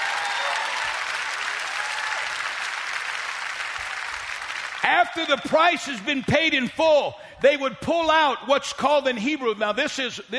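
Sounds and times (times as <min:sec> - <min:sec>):
audience applauding: 0:00.0 - 0:05.8
speech: 0:04.8 - 0:10.3.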